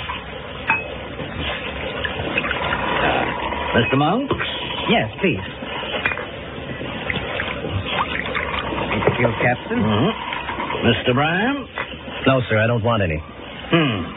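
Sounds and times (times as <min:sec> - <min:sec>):
wine pouring into glasses: 0:00.0 - 0:06.3, 0:07.0 - 0:11.5
tableware clinking: 0:00.6 - 0:01.0
speech: 0:03.8 - 0:05.6, 0:09.2 - 0:10.2, 0:10.8 - 0:14.1.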